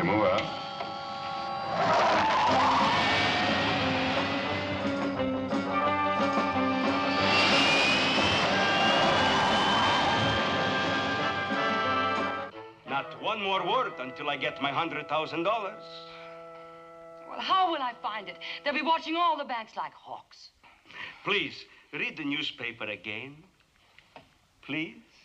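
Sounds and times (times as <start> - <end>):
turbine engines powering up: 0.0 - 12.5
speech: 13.4 - 16.1, 17.4 - 20.6, 21.2 - 23.5, 24.6 - 25.1.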